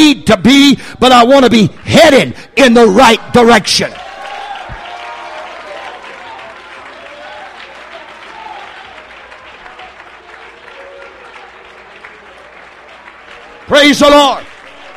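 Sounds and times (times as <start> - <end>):
speech: 0.0 - 4.0, 13.7 - 14.5
audience clapping and applauding: 4.0 - 14.9.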